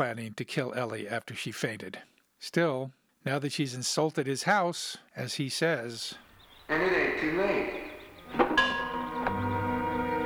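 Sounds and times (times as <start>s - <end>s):
speech: 0.0s - 8.8s
bell clanking: 8.4s - 9.6s.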